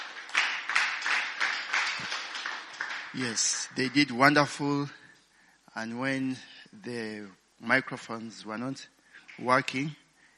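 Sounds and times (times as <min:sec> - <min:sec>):
audience clapping hands for worship team: 0:00.0 - 0:04.4
speech: 0:03.1 - 0:05.0, 0:05.8 - 0:10.0.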